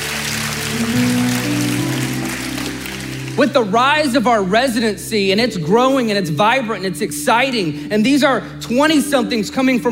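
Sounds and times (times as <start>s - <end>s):
a few people clapping: 0.0s - 3.7s
speech: 0.7s - 1.2s, 3.4s - 9.8s.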